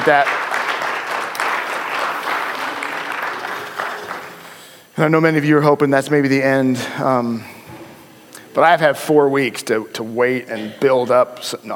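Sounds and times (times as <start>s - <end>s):
speech: 0.0s - 0.4s, 5.0s - 7.5s, 8.5s - 11.7s
audience applause: 0.0s - 4.8s.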